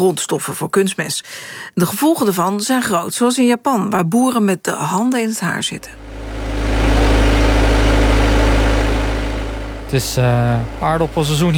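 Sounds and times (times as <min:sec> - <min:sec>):
speech: 0:00.0 - 0:06.2, 0:09.9 - 0:11.5
potato harvesting machine engine droning: 0:05.7 - 0:11.5.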